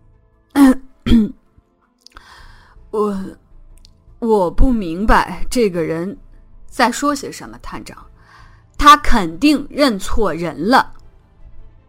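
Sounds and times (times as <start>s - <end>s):
person carefully clearing throat: 0.6s - 1.4s
speech: 2.9s - 3.4s, 4.2s - 8.1s, 8.8s - 11.0s.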